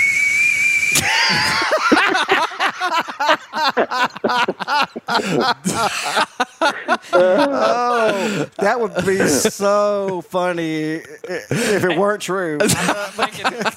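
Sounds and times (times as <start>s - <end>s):
whistling from breathing out through the nose: 0.0s - 1.6s
people talking and chuckling: 1.0s - 13.7s
speech: 3.8s - 13.7s.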